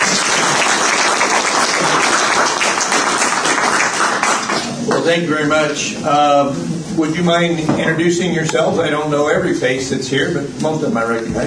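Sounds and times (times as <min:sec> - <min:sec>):
audience applause of welcome: 0:00.0 - 0:05.0
speech: 0:05.1 - 0:11.4.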